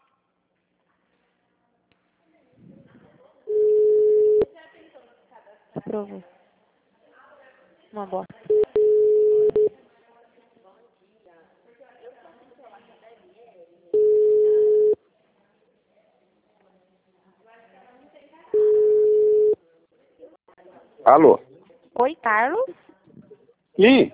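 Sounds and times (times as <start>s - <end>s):
telephone tone after dropped call: 3.5s - 4.5s, 8.5s - 9.7s, 14.0s - 15.0s, 18.6s - 19.6s
speech: 6.0s - 6.4s, 7.9s - 8.3s, 21.1s - 22.9s, 23.8s - 24.1s.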